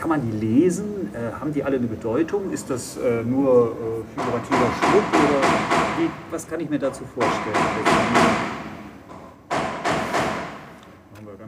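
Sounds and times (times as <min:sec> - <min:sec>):
speech: 0:00.1 - 0:08.6
hammering: 0:04.2 - 0:10.8.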